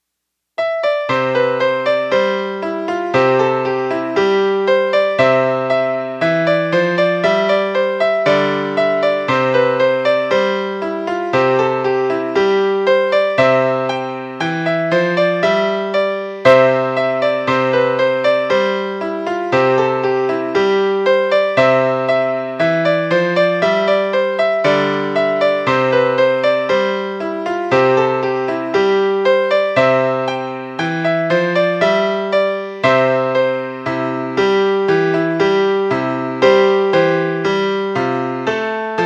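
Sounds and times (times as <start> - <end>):
folk melody: 0.6 - 39.0.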